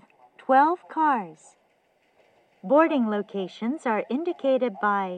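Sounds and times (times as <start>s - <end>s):
special rapid service train: 0.3s - 5.1s.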